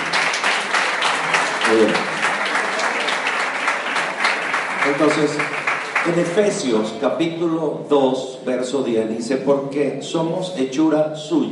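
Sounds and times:
crowd applause: 0.0s - 6.9s
speech: 1.7s - 2.1s, 4.9s - 11.5s.

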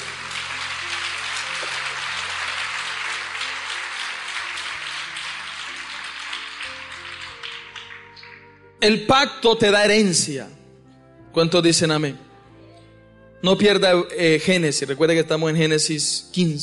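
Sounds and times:
audience applause: 0.0s - 8.5s
speech: 8.8s - 10.6s, 11.4s - 12.3s, 13.4s - 16.6s.

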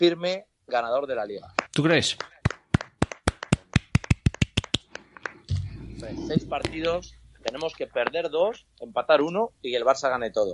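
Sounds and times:
speech: 0.0s - 2.3s, 6.0s - 10.5s
hands clapping: 1.4s - 5.7s.

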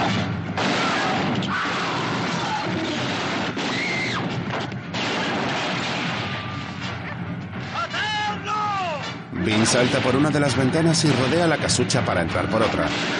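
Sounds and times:
gunfire in a 1972 western film shootout: 0.0s - 7.7s, 9.6s - 13.1s
people yelling: 0.7s - 3.1s, 7.8s - 9.2s
speech: 9.6s - 13.1s.

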